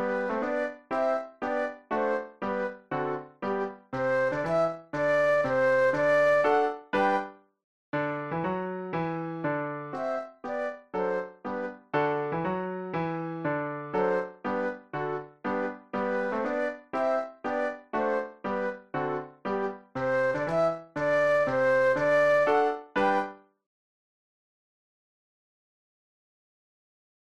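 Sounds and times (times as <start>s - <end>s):
classical march flute duet: 0.0s - 7.3s, 9.8s - 12.2s, 14.0s - 23.4s
classical piano: 0.0s - 7.4s, 8.0s - 23.4s.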